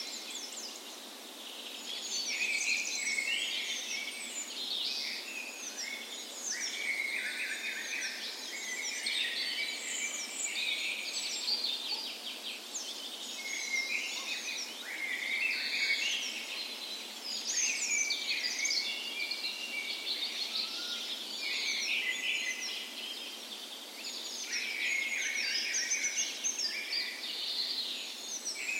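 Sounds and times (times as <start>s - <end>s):
many songbirds in a dawn chorus: 0.0s - 28.7s.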